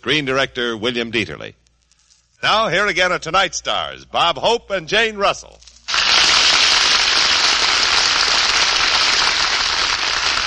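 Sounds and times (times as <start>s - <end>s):
speech: 0.0s - 1.6s, 2.4s - 5.7s
studio audience applause: 5.9s - 10.4s.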